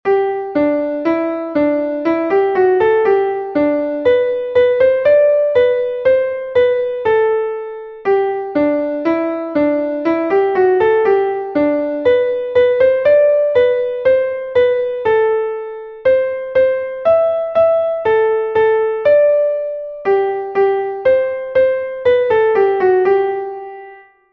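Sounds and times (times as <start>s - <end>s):
piano: 0.0s - 24.3s.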